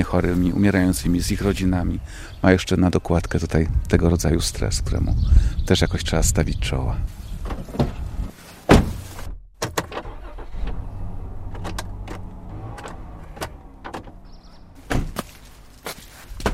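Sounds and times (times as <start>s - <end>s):
speech: 0.0s - 7.2s
solid thud: 8.7s - 9.3s, 14.8s - 15.4s
door opening: 8.7s - 15.3s
footsteps: 14.8s - 16.5s.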